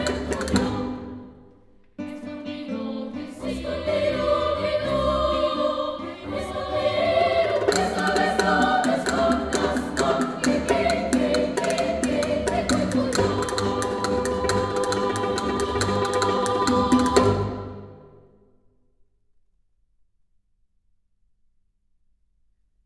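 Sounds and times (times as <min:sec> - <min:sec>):
folk songs: 0:00.0 - 0:18.3.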